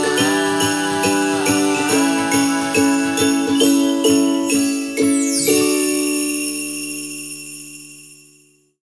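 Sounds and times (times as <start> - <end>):
Christmas ukulele music: 0.0 - 6.7.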